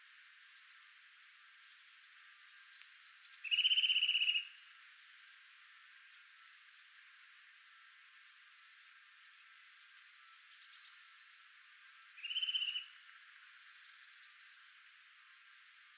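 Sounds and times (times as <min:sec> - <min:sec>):
Eurasian nuthatch Sitta europaea piping trill: 0:03.4 - 0:04.5, 0:12.1 - 0:13.0.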